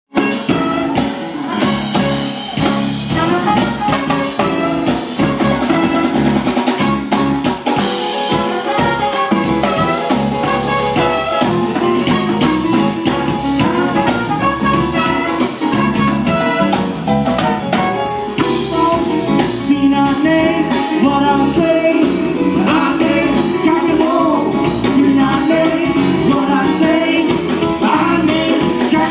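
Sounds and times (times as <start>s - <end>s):
band playing: 0.1s - 29.0s.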